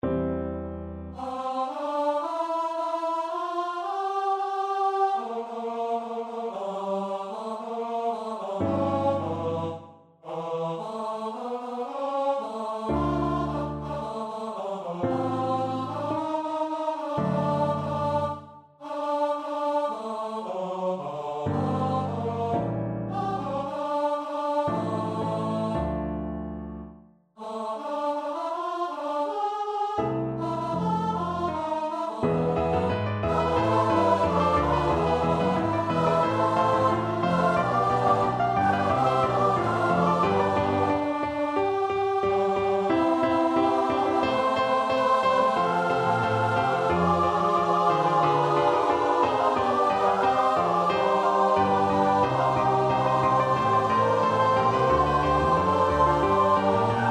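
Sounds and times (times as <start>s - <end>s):
choir singing: 1.1s - 26.3s, 27.4s - 57.1s.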